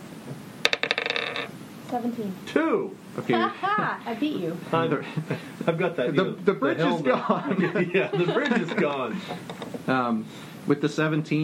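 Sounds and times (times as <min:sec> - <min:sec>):
dice tumbling across a hard surface: 0:00.6 - 0:01.5
speech: 0:01.9 - 0:11.4
laughter: 0:03.3 - 0:04.0, 0:04.8 - 0:09.5.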